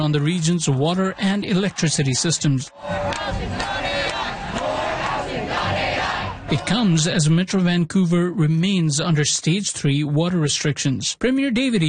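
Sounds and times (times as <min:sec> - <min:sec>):
speech: 0:00.0 - 0:03.7, 0:06.5 - 0:11.8
protest crowd chanting: 0:00.0 - 0:07.0.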